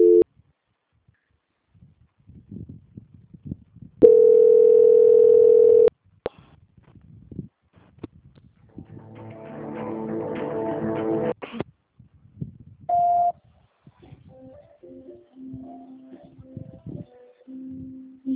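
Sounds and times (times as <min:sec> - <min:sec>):
telephone tones during a call transfer: 0:00.0 - 0:00.2, 0:04.0 - 0:05.9
short beep: 0:12.9 - 0:13.4.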